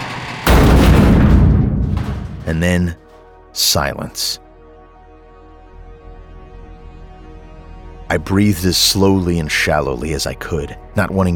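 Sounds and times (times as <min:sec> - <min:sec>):
creature smashing against a garage door: 0:00.0 - 0:02.8
speech: 0:02.5 - 0:03.0, 0:03.6 - 0:04.4, 0:08.1 - 0:11.3.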